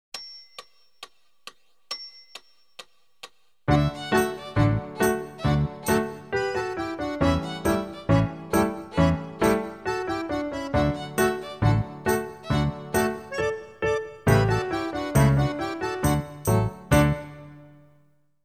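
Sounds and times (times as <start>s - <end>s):
Irish melody: 3.7s - 17.6s.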